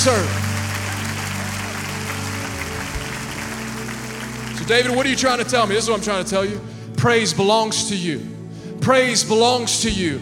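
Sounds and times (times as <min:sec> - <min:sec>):
speech: 0:00.0 - 0:00.4, 0:04.7 - 0:10.2
audience clapping hands: 0:00.0 - 0:06.2.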